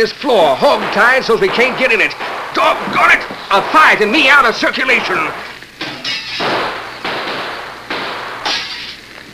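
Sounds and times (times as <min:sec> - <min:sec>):
speech: 0:00.0 - 0:05.5
gunshots in a staged shootout in an audio drama: 0:00.0 - 0:09.1.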